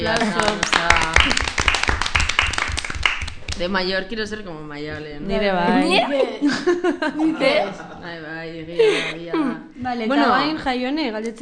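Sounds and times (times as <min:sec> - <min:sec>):
speech: 0:00.0 - 0:01.4, 0:03.6 - 0:11.4
small group applauding with sharp hand claps: 0:00.0 - 0:03.8
laughter: 0:05.8 - 0:08.1.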